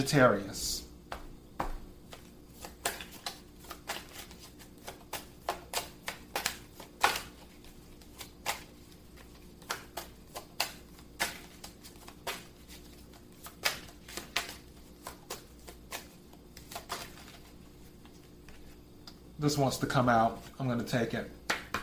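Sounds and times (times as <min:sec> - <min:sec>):
speech: 0:00.0 - 0:00.8, 0:19.4 - 0:21.4
tarot cards being shuffled and drawn: 0:02.0 - 0:18.8.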